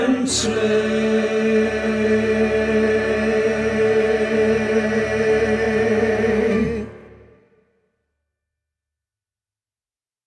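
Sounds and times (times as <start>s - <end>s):
tenor singing Christmas practice track for singers: 0.0s - 7.4s.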